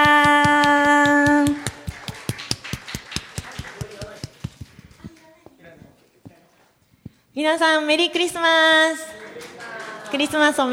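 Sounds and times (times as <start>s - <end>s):
audience applause: 1.1s - 5.0s, 9.1s - 10.4s
speech: 7.4s - 9.1s, 10.1s - 10.7s.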